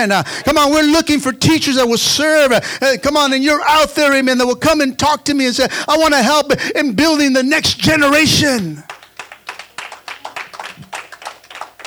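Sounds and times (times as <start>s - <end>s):
speech: 0.0s - 8.9s
audience clapping in a quick rhythm: 8.8s - 11.8s.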